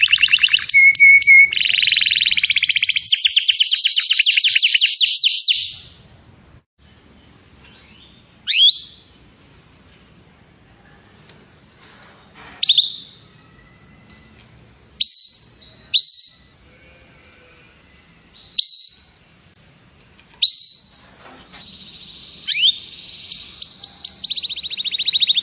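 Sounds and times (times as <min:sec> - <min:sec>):
canary singing: 0:00.0 - 0:06.0, 0:07.6 - 0:09.2, 0:12.6 - 0:14.4, 0:15.0 - 0:19.6, 0:20.4 - 0:25.4.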